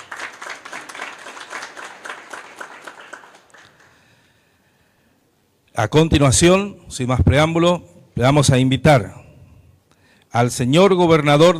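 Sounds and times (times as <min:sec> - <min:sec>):
audience applause: 0:00.0 - 0:04.1
speech: 0:05.8 - 0:09.2, 0:10.3 - 0:11.5.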